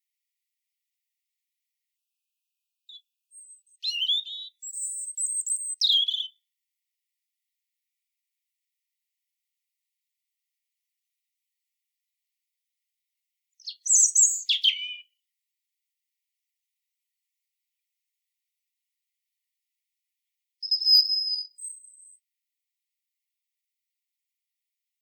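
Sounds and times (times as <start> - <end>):
European robin singing: 2.9 - 6.4, 13.6 - 15.2, 20.6 - 22.2.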